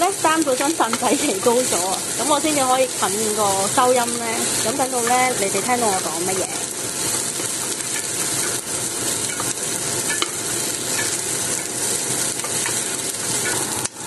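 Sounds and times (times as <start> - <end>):
onions sizzling in a pan over medium-high heat: 0.0 - 14.0
speech: 0.1 - 6.6
scraping and clicking from stirring: 7.0 - 13.6.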